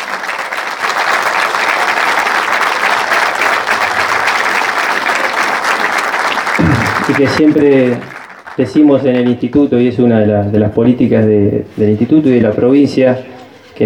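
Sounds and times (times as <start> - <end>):
audience applause: 0.0 - 9.4
speech: 7.2 - 13.8.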